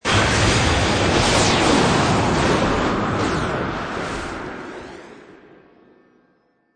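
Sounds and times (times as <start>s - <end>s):
magical flurry blasts of spell casting: 0.0s - 5.4s.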